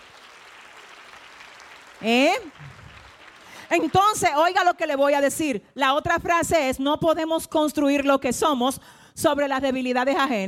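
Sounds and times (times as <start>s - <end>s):
audience applause: 0.0s - 4.6s
speech: 2.0s - 2.8s, 3.7s - 10.4s.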